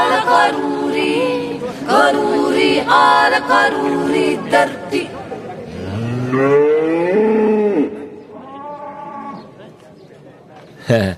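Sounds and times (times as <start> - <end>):
speech: 0.2 - 1.2, 1.8 - 5.2, 6.3 - 7.2, 10.9 - 11.1
cow mooing: 5.7 - 9.5.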